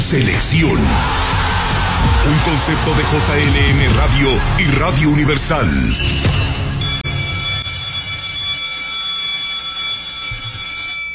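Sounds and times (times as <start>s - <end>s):
speech: 0.1s - 1.2s, 2.0s - 6.6s
school bell ringing: 6.8s - 11.1s.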